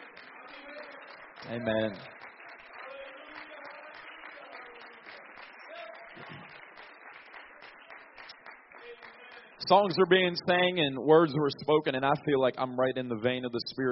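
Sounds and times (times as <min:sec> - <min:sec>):
crowd clapping: 0:00.0 - 0:10.8
speech: 0:01.5 - 0:02.2, 0:09.7 - 0:13.9.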